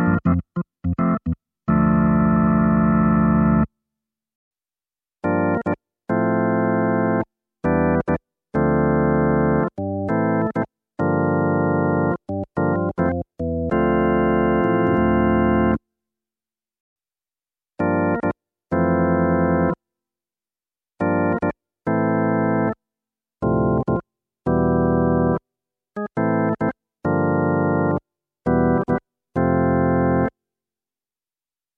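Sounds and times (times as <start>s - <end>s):
Nord Stage 2 B3 organ: 0.0s - 3.7s, 5.2s - 15.8s, 17.8s - 19.8s, 21.0s - 22.8s, 23.4s - 25.4s, 26.0s - 30.3s.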